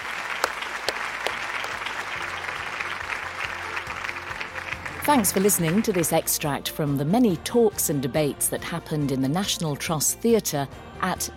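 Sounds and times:
audience applause for a panel at Countryfile Live 2019 National Trust Theatre: 0:00.0 - 0:06.2
speech: 0:05.1 - 0:11.3.

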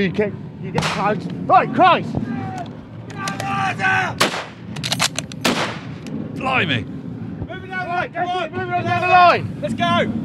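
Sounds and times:
speech: 0:00.0 - 0:02.3, 0:03.7 - 0:05.1, 0:06.4 - 0:07.0, 0:07.9 - 0:10.2
artillery fire pounding a trench line: 0:04.2 - 0:06.2.

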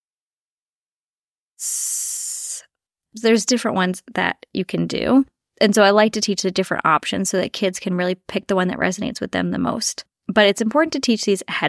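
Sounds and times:
person breathing out in a hiss imitating a snake: 0:01.6 - 0:02.7
speech: 0:03.1 - 0:11.6.

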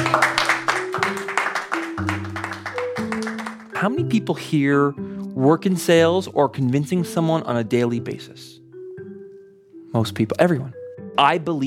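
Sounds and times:
audience applause: 0:00.0 - 0:03.8
speech: 0:03.8 - 0:08.6, 0:10.0 - 0:11.6.

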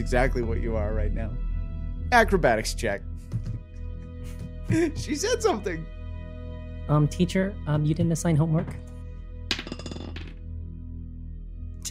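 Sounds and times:
speech: 0:00.0 - 0:01.5, 0:02.1 - 0:03.5, 0:04.7 - 0:06.0, 0:06.9 - 0:08.8
dice being picked up and clinking: 0:09.5 - 0:10.4.

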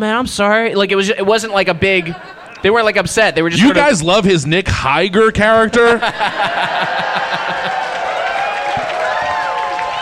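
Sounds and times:
speech: 0:00.0 - 0:07.8
laughter: 0:01.8 - 0:04.0, 0:05.7 - 0:08.4
live audience cheering and shouting: 0:06.0 - 0:10.0
high whoops: 0:07.0 - 0:10.0.

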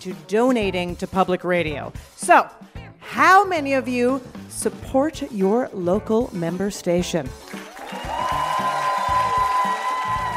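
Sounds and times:
speech: 0:00.0 - 0:07.5
live audience cheering and shouting: 0:07.6 - 0:10.3.

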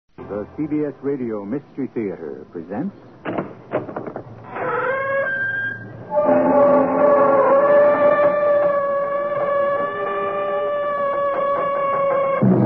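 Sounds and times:
speech: 0:00.2 - 0:03.4
creaking door swinging open: 0:03.2 - 0:12.5.

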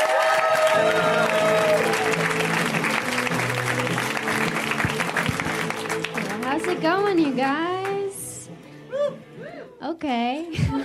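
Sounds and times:
audience at a stand-up comedy show clapping and cheering: 0:00.0 - 0:08.4
music playing: 0:00.0 - 0:10.8
speech: 0:07.1 - 0:07.7.

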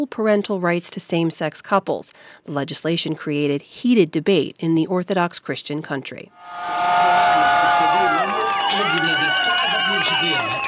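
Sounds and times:
speech: 0:00.0 - 0:07.2, 0:10.0 - 0:10.6
crowd of LGBTQ+ activists cheering in the streets: 0:06.4 - 0:10.6.

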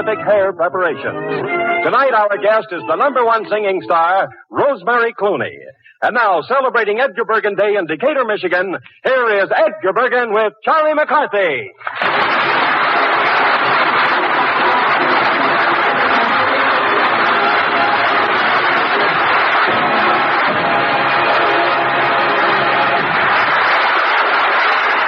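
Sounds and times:
speech: 0:00.0 - 0:12.3
large audience applause: 0:11.8 - 0:25.0.

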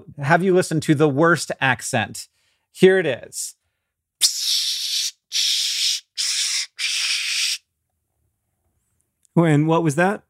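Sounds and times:
speech: 0:00.1 - 0:03.6, 0:04.2 - 0:04.6, 0:09.4 - 0:10.2
aerosol body spray hissing: 0:04.2 - 0:07.6.

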